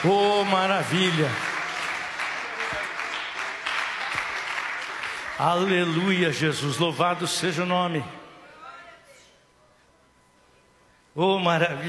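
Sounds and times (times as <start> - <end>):
speech: 0.0 - 1.5, 5.4 - 8.2, 11.2 - 11.8
church audience clapping hands: 0.0 - 6.2.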